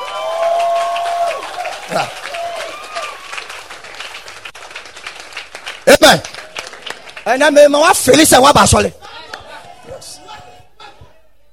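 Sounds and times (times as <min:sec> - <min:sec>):
audience clapping in church: 0:00.0 - 0:08.4
speech: 0:01.9 - 0:02.3, 0:06.1 - 0:06.3, 0:07.3 - 0:09.0.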